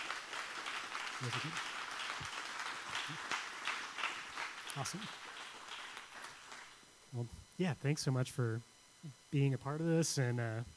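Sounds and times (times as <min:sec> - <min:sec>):
audience round of applause: 0:00.0 - 0:06.8
speech: 0:01.2 - 0:02.4, 0:03.1 - 0:03.3, 0:04.8 - 0:05.3, 0:07.1 - 0:10.7.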